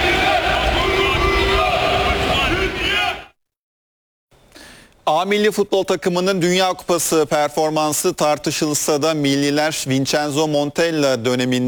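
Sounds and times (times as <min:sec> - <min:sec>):
football fans chanting at the Turkish national team training in Los Angeles: 0:00.0 - 0:03.3
speech: 0:05.1 - 0:11.6.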